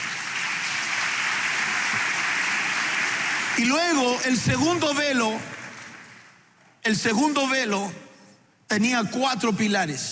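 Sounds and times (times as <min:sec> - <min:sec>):
audience applause: 0:00.0 - 0:06.4
speech: 0:03.6 - 0:05.5, 0:06.8 - 0:08.0, 0:08.7 - 0:10.1.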